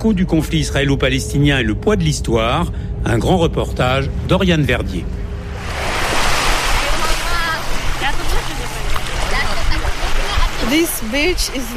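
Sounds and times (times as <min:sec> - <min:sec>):
speech: 0:00.0 - 0:05.8, 0:10.7 - 0:11.7
Mediterranean sea waves washing onto Marbella beach in Barcelona: 0:05.4 - 0:11.7.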